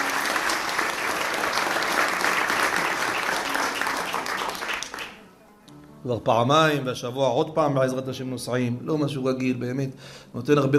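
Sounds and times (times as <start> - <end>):
audience applause: 0.0 - 5.2
speech: 6.0 - 10.7.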